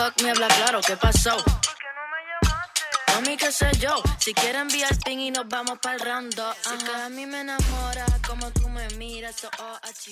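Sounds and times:
drum: 0:00.0 - 0:01.8, 0:02.4 - 0:05.9, 0:07.6 - 0:10.1.

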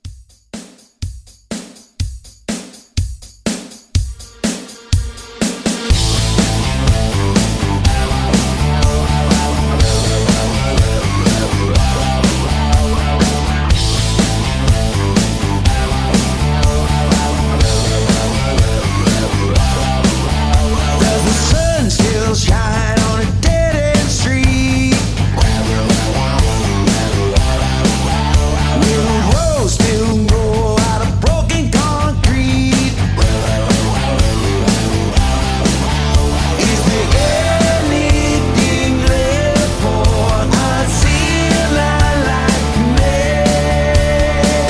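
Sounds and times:
rock music: 0:03.5 - 0:44.6.

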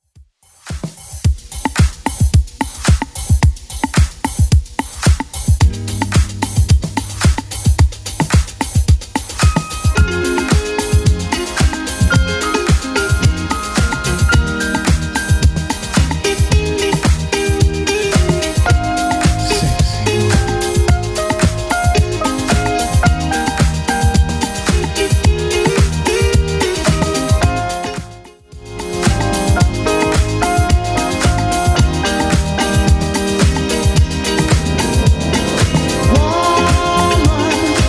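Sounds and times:
80s club music edit: 0:00.7 - 0:37.8.

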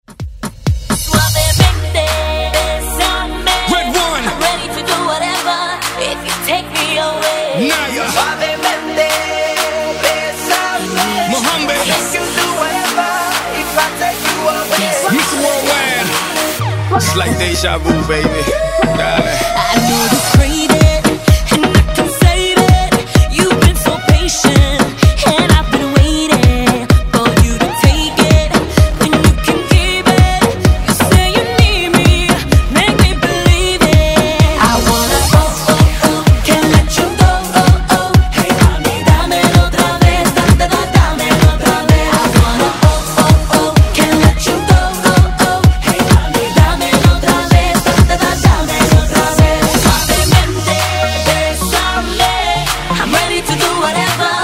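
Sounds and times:
afrobeat music: 0:00.0 - 0:54.4.

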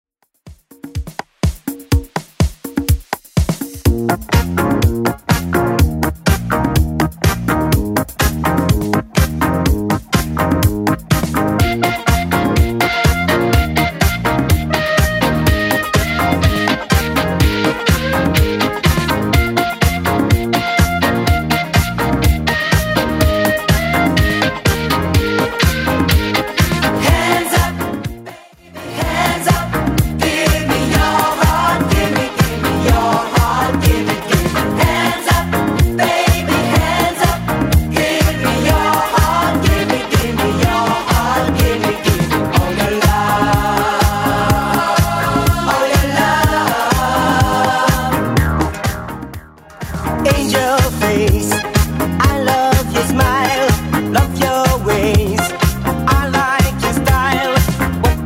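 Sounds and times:
80s club edit dance music at 124 bpm: 0:00.6 - 0:58.2.

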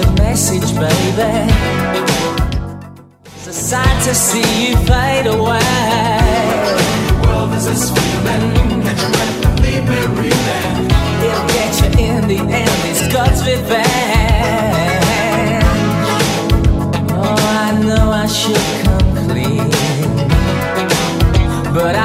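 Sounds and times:
80s-style music beat at 102 bpm: 0:00.0 - 0:22.0.

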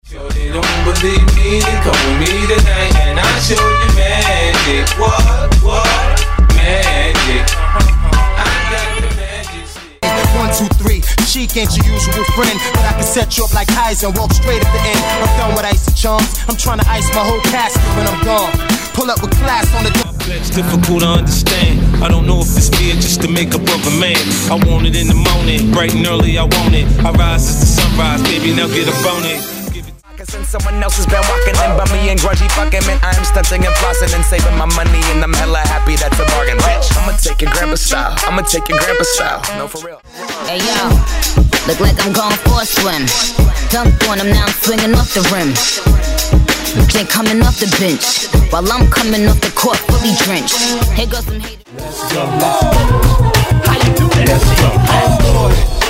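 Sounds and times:
throwback hip hop and RnB megamix: 0:00.0 - 0:55.8.

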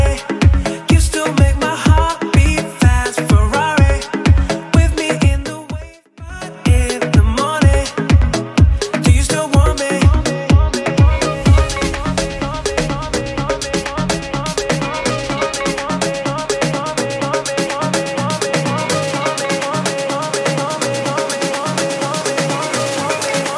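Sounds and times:
house music beat at 125 bpm: 0:00.0 - 0:23.5.

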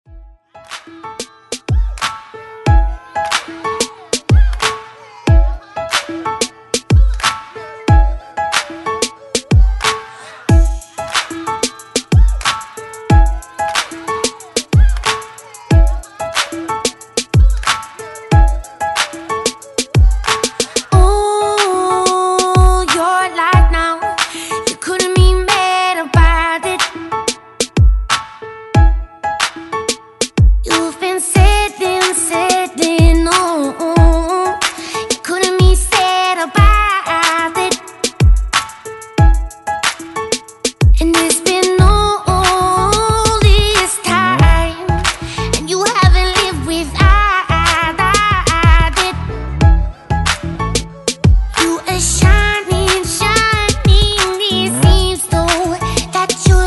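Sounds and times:
Top40 pop music: 0:00.5 - 0:56.6.

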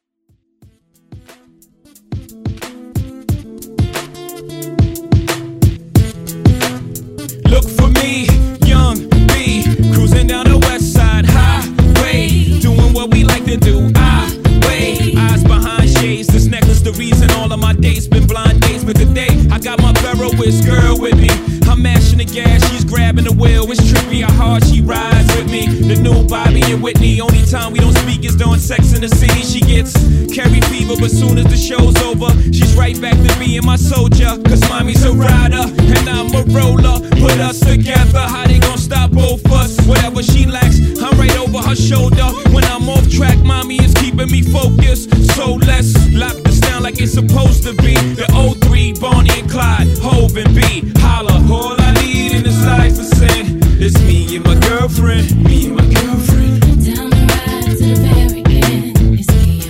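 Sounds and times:
retro drum beat: 0:00.6 - 0:59.6.

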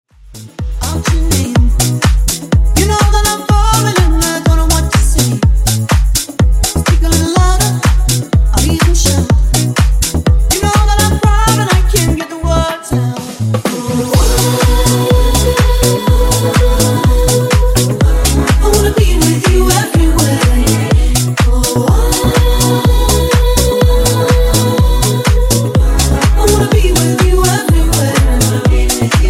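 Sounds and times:
disco funk remix: 0:00.2 - 0:29.2.

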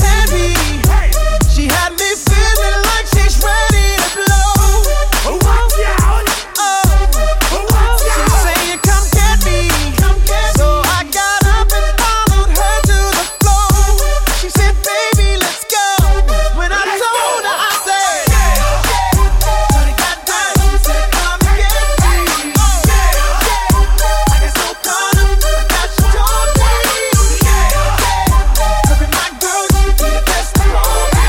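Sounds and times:
drum loop: 0:00.0 - 0:16.6, 0:17.6 - 0:31.2.

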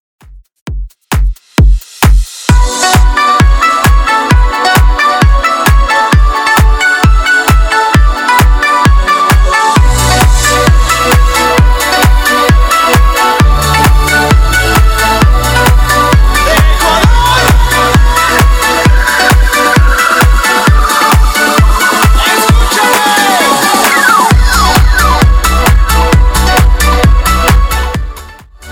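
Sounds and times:
90s electronic dance track: 0:00.2 - 0:28.7.

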